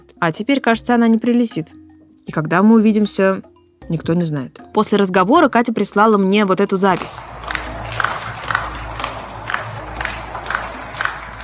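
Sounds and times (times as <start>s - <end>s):
speech: 0.2s - 8.0s
residents clapping from their balconies: 6.9s - 11.4s.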